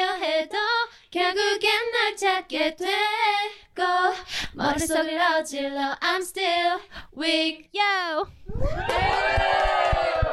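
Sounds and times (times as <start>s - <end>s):
speech: 1.1s - 10.3s
audience cheering and screaming: 8.5s - 10.3s
clapping: 8.8s - 10.3s.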